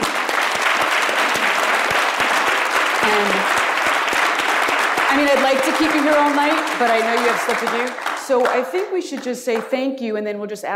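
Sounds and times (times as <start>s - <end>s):
audience applause: 0.0s - 9.7s
speech: 5.2s - 10.7s.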